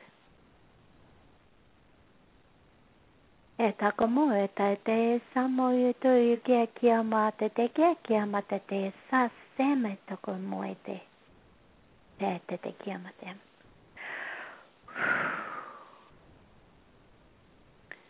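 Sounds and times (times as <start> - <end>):
speech: 3.6 - 11.1, 12.2 - 13.5
slow inhale and exhale breathing: 14.0 - 16.2.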